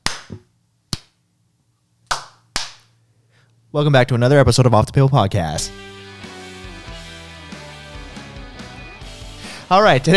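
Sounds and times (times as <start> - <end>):
hand claps: 0.0 - 1.2, 2.1 - 2.9
speech: 3.7 - 5.9, 9.7 - 10.1.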